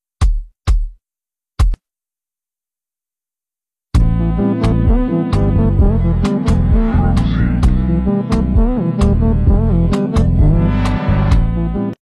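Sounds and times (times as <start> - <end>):
afro jazz music: 4.0 - 12.0.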